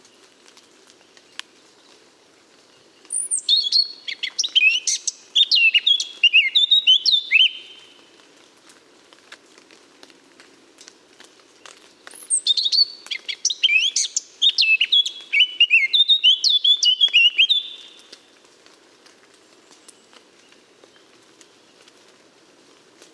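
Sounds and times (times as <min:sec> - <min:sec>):
Eurasian blackcap song: 0:02.6 - 0:08.1, 0:11.6 - 0:18.4.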